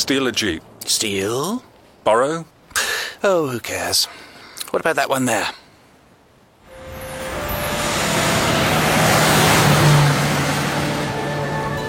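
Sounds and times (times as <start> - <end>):
speech: 0.1 - 2.5, 3.2 - 5.6
car engine running: 6.8 - 11.7.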